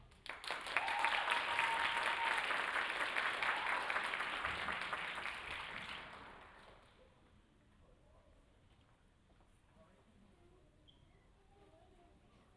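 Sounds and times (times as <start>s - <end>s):
crowd applause: 0.2s - 6.9s.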